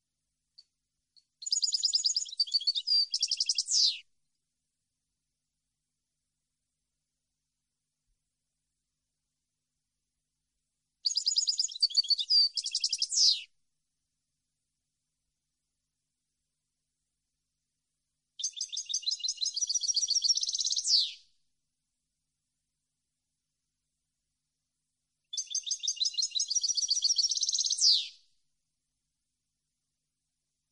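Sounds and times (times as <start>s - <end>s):
European goldfinch singing: 1.4s - 4.0s, 11.0s - 13.5s, 18.4s - 21.2s, 25.3s - 28.1s.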